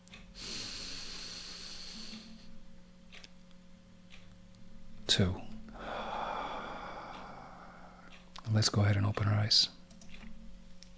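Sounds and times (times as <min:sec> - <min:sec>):
low hum: 0:00.0 - 0:10.9
deep breath drawn in during a guided meditation: 0:00.4 - 0:02.6, 0:05.7 - 0:08.2
speech: 0:05.1 - 0:05.5, 0:08.5 - 0:09.8.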